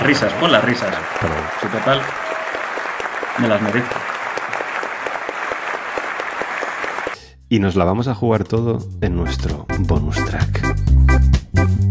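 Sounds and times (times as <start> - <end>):
speech: 0.0 - 2.4, 3.4 - 4.1, 7.5 - 11.2
crowd applause sound effect: 0.0 - 7.2.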